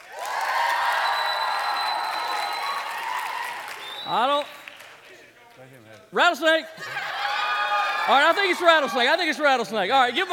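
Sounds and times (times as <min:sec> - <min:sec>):
crowd whooping: 0:00.0 - 0:04.1, 0:06.8 - 0:09.2
crowd clapping to vote: 0:00.0 - 0:06.1
speech: 0:04.1 - 0:04.6, 0:06.1 - 0:07.0, 0:08.0 - 0:10.3.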